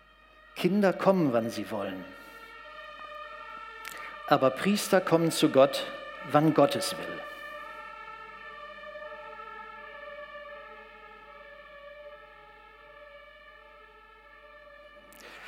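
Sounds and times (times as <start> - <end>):
fire engine siren passing: 0.0 - 15.4
speech: 0.6 - 2.2, 4.3 - 7.3.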